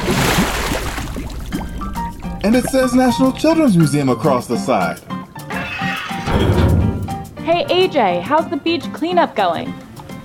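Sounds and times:
submarine surfacing from water with churning, sloshing water: 0.0s - 4.3s
speech: 2.4s - 5.1s, 6.4s - 6.6s, 7.5s - 9.8s.

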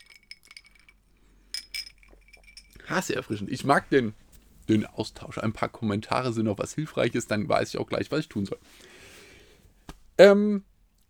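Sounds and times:
glass clinking: 0.0s - 3.4s
speech: 2.9s - 9.0s, 10.2s - 10.7s.

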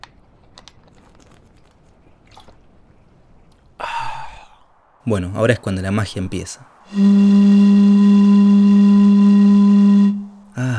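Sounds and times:
speech: 5.0s - 7.3s
blowing across an empty bottle: 6.9s - 10.6s.

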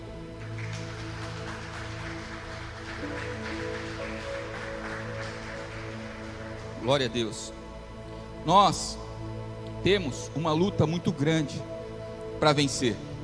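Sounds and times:
audience applauding: 0.4s - 7.2s
speech: 6.8s - 7.6s, 8.4s - 11.7s, 12.4s - 13.1s.

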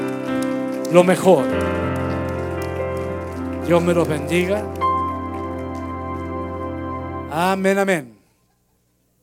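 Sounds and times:
audience applause: 0.0s - 7.1s
speech: 0.9s - 1.8s, 3.7s - 4.8s, 7.3s - 8.2s.

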